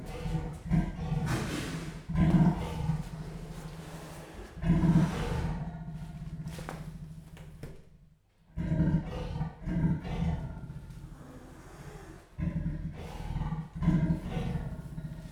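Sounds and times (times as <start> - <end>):
captive leopard roaring at a zoo in Jászberény, Hungary: 0.0 - 7.2, 8.5 - 15.3.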